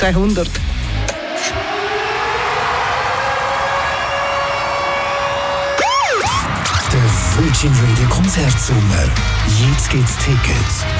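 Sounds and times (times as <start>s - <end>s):
speech: 0.0s - 0.8s, 7.4s - 10.9s
alarm siren: 1.0s - 7.3s.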